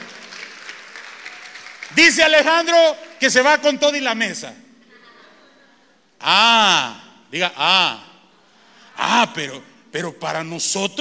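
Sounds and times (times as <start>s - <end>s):
audience applause: 0.0s - 2.4s
speech: 1.9s - 4.6s, 6.2s - 8.1s, 9.0s - 10.9s
laughter: 4.8s - 6.1s.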